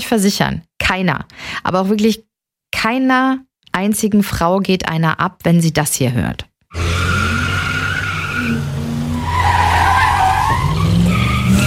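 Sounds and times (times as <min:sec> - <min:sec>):
speech: 0:00.0 - 0:06.8
car tires spinning under hard acceleration at a traffic light: 0:06.7 - 0:11.6.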